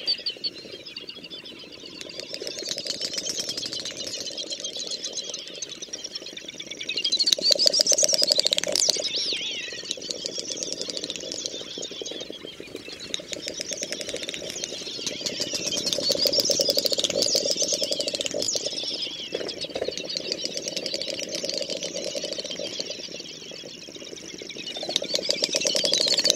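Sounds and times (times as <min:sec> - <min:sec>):
great snipe calling: 0:02.0 - 0:26.3.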